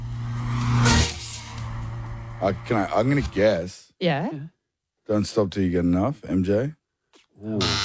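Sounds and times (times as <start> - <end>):
car driving past with engine and tyre noise: 0.0 - 3.6
speech: 2.4 - 6.8, 7.4 - 7.8.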